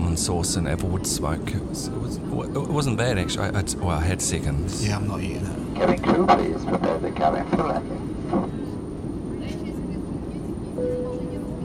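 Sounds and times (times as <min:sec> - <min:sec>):
airplane cabin drone during approach to landing: 0:00.0 - 0:11.6
speech: 0:00.2 - 0:08.6
faint tone: 0:10.8 - 0:11.6.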